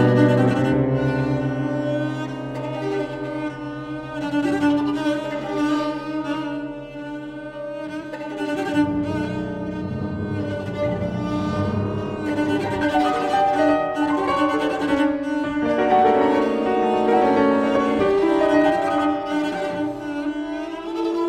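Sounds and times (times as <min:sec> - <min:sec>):
piano quartet playing: 0:00.0 - 0:21.2.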